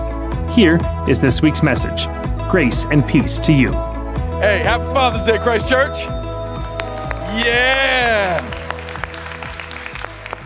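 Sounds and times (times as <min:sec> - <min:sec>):
speech: 0:00.5 - 0:06.2, 0:07.3 - 0:08.4
person clapping hands: 0:06.6 - 0:10.4.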